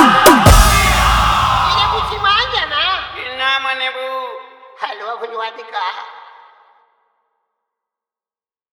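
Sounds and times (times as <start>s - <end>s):
Holi dholak drum bass mix: 0.0s - 3.2s.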